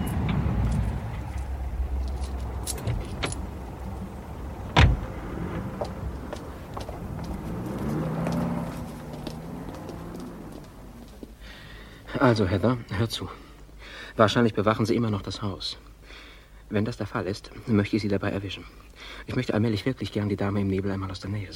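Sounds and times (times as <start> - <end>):
car engine rumbling: 0.0 - 13.8
speech: 12.2 - 13.4, 14.2 - 21.5.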